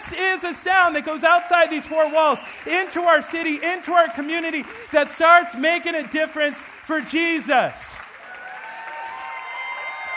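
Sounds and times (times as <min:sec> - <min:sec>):
audience clapping: 0:00.0 - 0:10.1
speech: 0:00.1 - 0:07.9
faint whoops: 0:08.2 - 0:10.1.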